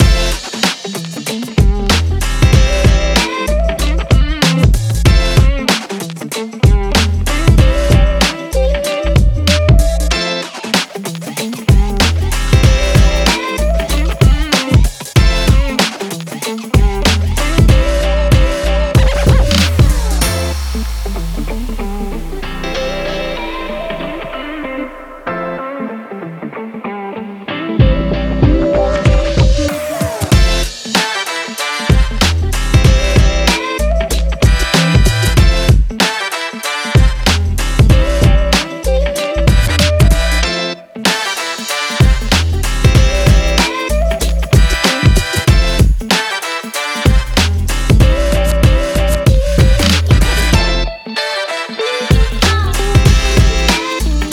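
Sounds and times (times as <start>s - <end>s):
hip hop backing track: 0.0s - 26.9s, 27.5s - 54.3s.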